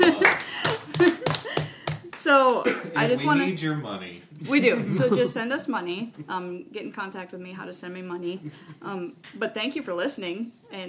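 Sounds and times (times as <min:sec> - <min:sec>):
laughter: 0:00.0 - 0:01.8, 0:04.5 - 0:05.5
hand clapping: 0:00.0 - 0:02.6
speech: 0:02.3 - 0:10.8.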